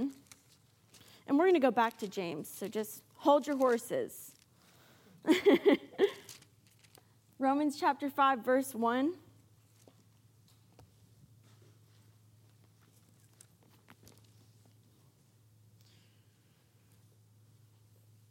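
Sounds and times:
book pages being turned: 0:00.0 - 0:04.5, 0:06.2 - 0:07.1, 0:12.6 - 0:14.8
speech: 0:01.3 - 0:04.3, 0:05.2 - 0:06.1, 0:07.4 - 0:09.2.

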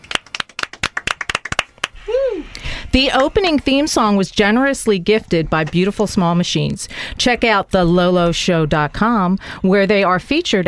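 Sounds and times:
round of applause: 0:00.0 - 0:02.4
speech: 0:02.9 - 0:10.6.

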